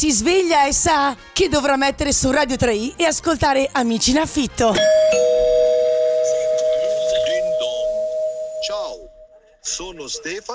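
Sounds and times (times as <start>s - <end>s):
speech: 0.0s - 5.7s, 9.8s - 10.5s
doorbell ding-dong chime: 4.8s - 9.4s.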